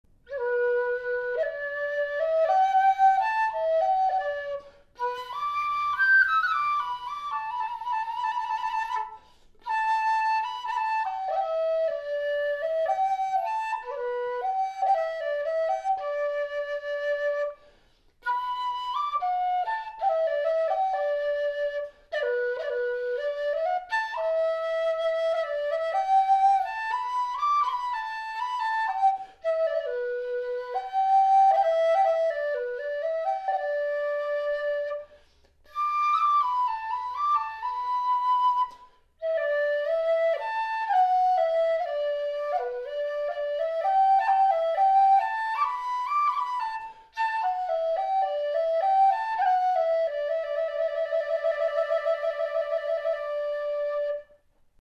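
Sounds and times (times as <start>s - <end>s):
flute: 0.0s - 54.8s.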